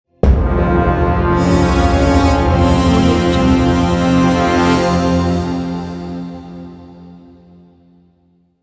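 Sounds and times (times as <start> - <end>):
logo sting: 0.2 - 6.4.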